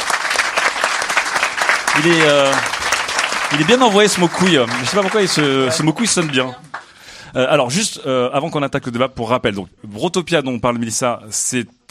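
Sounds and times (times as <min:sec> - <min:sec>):
audience applause: 0:00.0 - 0:07.0
speech: 0:02.0 - 0:02.8, 0:03.5 - 0:06.7, 0:07.3 - 0:11.8.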